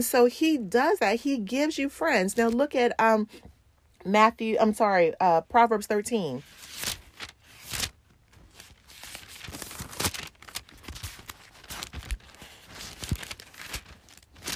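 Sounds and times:
speech: 0.0 - 6.9
thin paper Bible pages turning: 6.4 - 14.5.

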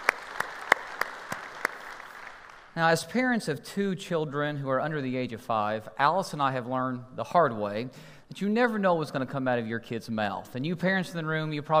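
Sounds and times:
audience clapping at a church service: 0.0 - 2.8
low hiss: 0.0 - 11.6
speech: 2.8 - 11.7.

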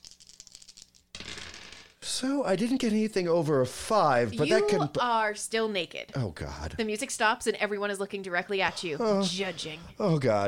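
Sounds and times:
dice being rolled: 0.0 - 2.0
speech: 2.2 - 10.4.

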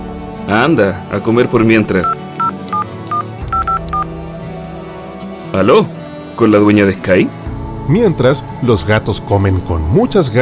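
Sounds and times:
speech: 0.5 - 2.2, 5.5 - 10.3
telephone number dialed with touch-tone beeps: 2.0 - 4.1.

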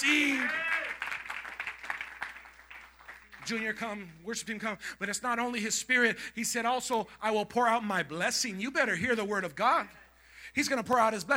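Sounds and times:
audience clapping hands: 0.0 - 4.1
speech: 3.5 - 11.3.

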